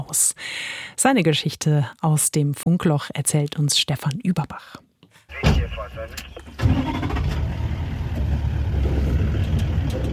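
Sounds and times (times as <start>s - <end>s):
speech: 0.0s - 7.2s
safari jeep engine starting: 5.6s - 10.1s.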